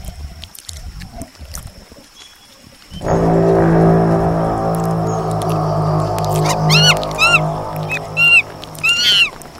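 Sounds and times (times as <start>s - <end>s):
soundscape: 3.0s - 9.5s.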